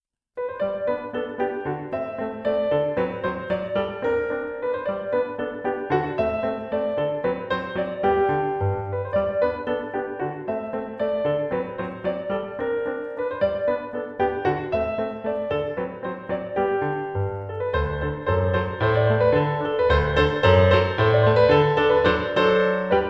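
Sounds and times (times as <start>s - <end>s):
ecossaise dance tune: 0.4s - 23.0s.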